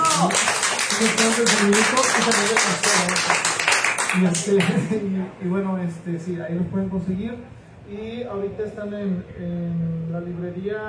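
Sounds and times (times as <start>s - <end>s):
group applause: 0.0s - 4.8s
speech: 0.2s - 3.4s, 4.1s - 10.8s
laughter: 4.4s - 5.1s.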